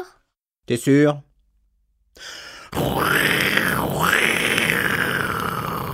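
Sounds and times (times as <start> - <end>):
speech: 0.0 - 1.3, 2.2 - 4.4
voice imitating a lion roar: 2.7 - 5.9.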